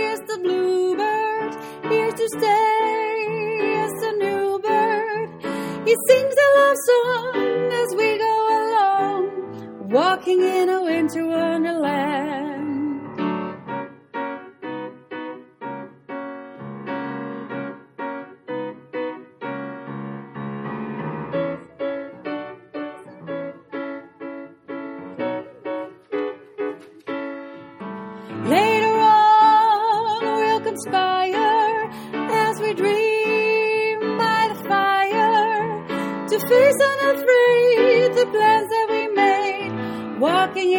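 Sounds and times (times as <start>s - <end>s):
second soprano singing: 0.0s - 13.6s, 25.2s - 40.7s.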